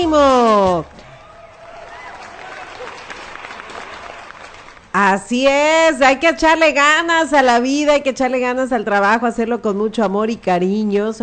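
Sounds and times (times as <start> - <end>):
speech: 0.1 - 1.0, 5.0 - 11.2
applause: 0.2 - 5.0.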